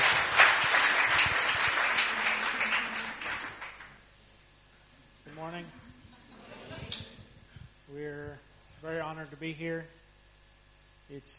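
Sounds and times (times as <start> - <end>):
crowd applauding: 0.0 - 4.1
speech: 9.4 - 10.0, 11.1 - 11.3.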